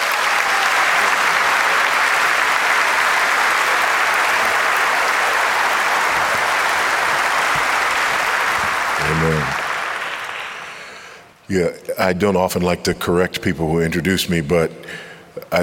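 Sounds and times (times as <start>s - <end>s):
audience applause in a church sanctuary in South Florida: 0.0s - 11.2s
speech: 11.5s - 15.6s.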